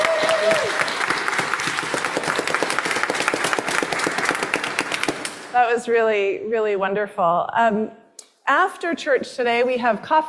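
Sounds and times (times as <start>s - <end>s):
applause: 0.0s - 5.5s
speech: 5.7s - 10.2s.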